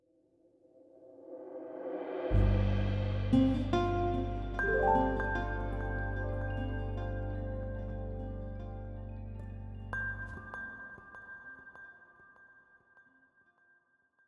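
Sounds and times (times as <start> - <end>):
music intro in G minor: 2.3 - 10.6.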